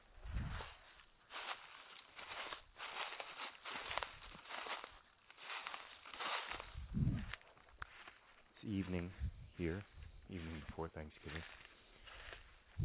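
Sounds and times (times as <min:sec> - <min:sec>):
footsteps on an evening walk outdoors: 0:00.1 - 0:12.8
speech: 0:08.7 - 0:11.7.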